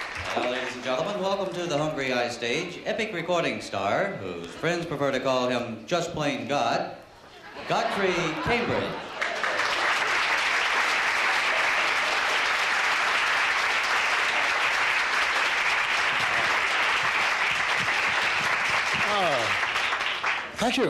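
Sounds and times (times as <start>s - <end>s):
nightclub audience applause at the Hungry Eye stage: 0.0s - 1.3s, 8.3s - 20.8s
speech: 0.4s - 7.0s, 7.6s - 9.0s, 20.7s - 20.8s
laughter: 7.2s - 10.2s.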